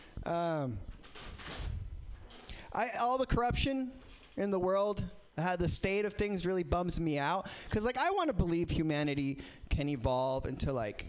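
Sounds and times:
speech: 0.2 - 1.7, 2.7 - 11.0
door creaking with a squealing tone: 0.9 - 2.6.

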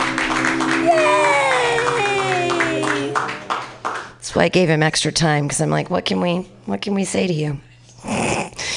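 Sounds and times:
crowd cheering and whooping: 0.0 - 3.8
audience applause: 0.0 - 4.2
speech: 4.4 - 8.2.

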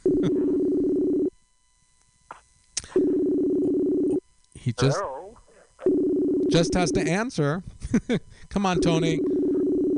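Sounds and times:
telephone ringback tone: 0.0 - 1.3, 3.1 - 4.2, 5.9 - 7.0, 8.8 - 9.9
speech: 4.7 - 5.2, 6.5 - 9.2.

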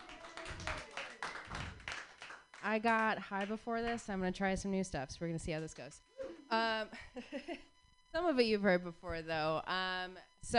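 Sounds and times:
audience clapping: 0.0 - 4.0
speech: 2.6 - 10.5.

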